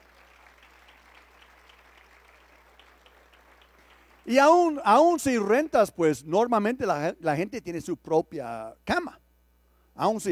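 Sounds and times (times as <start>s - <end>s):
audience applause: 0.0s - 4.8s
speech: 4.2s - 9.2s, 10.0s - 10.3s.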